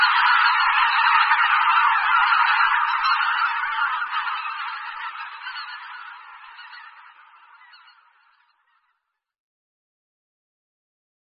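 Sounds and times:
bean goose honking: 0.0 - 8.9.

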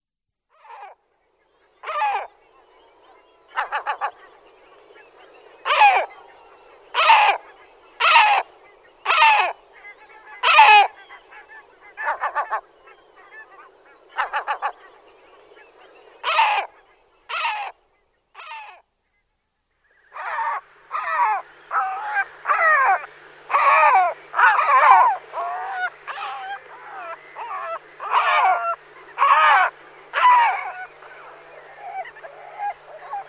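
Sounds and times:
great black-backed gull calling: 3.5 - 4.4, 5.1 - 6.3, 6.9 - 15.1, 15.8 - 17.8, 20.1 - 33.2.

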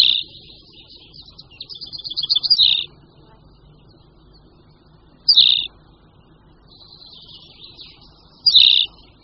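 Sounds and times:
tawny pipit song of buzzy trills and chirps: 0.0 - 9.2.

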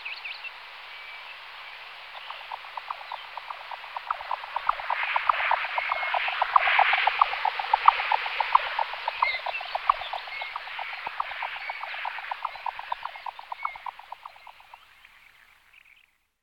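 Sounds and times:
faint higher warble: 2.1 - 14.9
Jack snipe giving low knocking pulses: 2.3 - 14.7.

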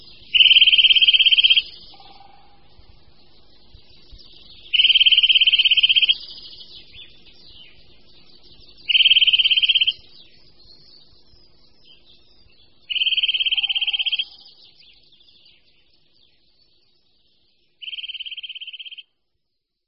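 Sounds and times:
Eurasian nuthatch trilling: 0.0 - 3.7, 4.4 - 10.1, 12.9 - 14.6, 17.8 - 19.1
background bird chatter: 0.0 - 19.2.

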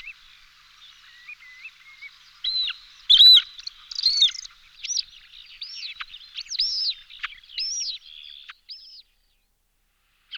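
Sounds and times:
Montagu's harrier Circus pygargus calling: 1.2 - 8.0.

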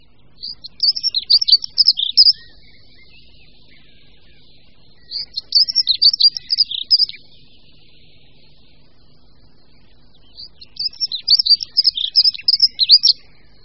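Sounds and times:
Dunnock song, brisk high scratchy warble: 0.0 - 13.6.

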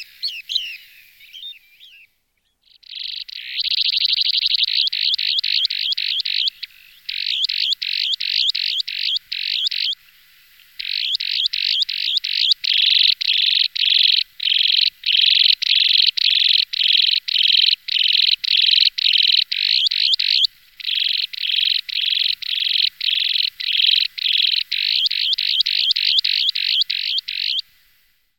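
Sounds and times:
Broad-billed sandpiper buzzy calls: 0.0 - 27.9.

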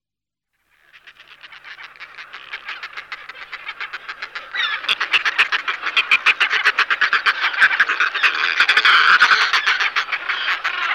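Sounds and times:
Northern fulmar cackling: 0.8 - 10.9.

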